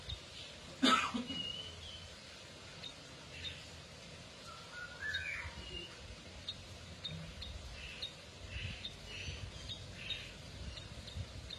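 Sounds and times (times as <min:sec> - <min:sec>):
canary F1 chirping: 0:00.0 - 0:00.7, 0:01.3 - 0:11.5
low rumble and hiss: 0:00.0 - 0:11.5
cough-like burst: 0:00.8 - 0:01.4.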